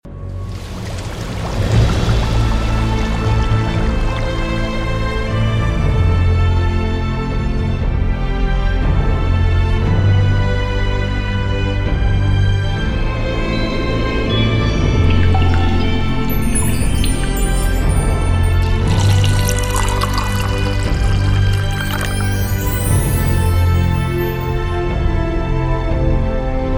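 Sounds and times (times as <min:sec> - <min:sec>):
grand background music: 0:00.1 - 0:26.7.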